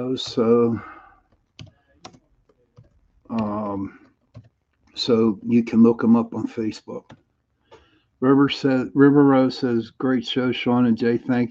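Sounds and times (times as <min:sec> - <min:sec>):
speech: 0:00.0 - 0:00.9, 0:05.0 - 0:07.2, 0:08.2 - 0:11.4
typing on a computer keyboard: 0:01.3 - 0:05.0.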